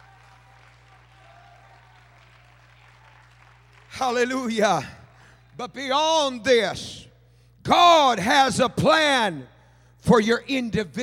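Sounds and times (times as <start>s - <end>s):
audience clapping hands: 0.0s - 6.0s
speech: 4.0s - 5.0s, 5.6s - 7.1s, 7.7s - 11.0s.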